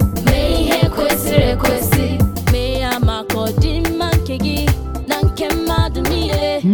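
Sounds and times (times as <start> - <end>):
Igbo theme song: 0.1 - 6.6.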